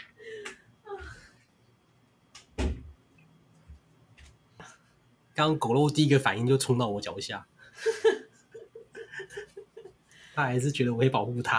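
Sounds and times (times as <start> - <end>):
household door closing: 2.5 - 3.0
speech: 5.4 - 7.5, 10.4 - 11.5.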